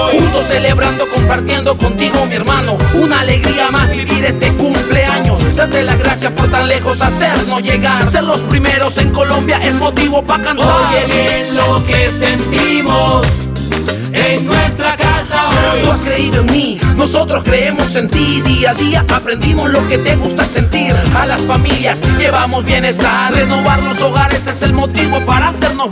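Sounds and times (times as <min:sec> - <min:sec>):
jingle: 0:00.1 - 0:14.8, 0:15.5 - 0:25.8.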